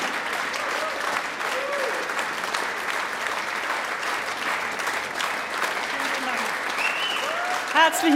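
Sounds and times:
audience applause: 0.0 - 8.1.

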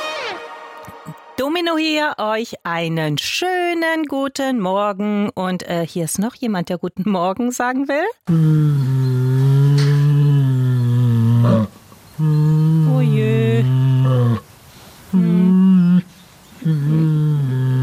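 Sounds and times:
speech: 1.4 - 9.0
Asian black bear humming and growling: 8.3 - 14.4, 15.1 - 17.8.

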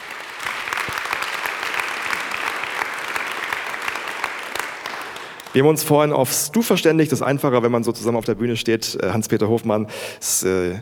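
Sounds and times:
audience applause: 0.0 - 5.6
speech: 5.5 - 10.7.

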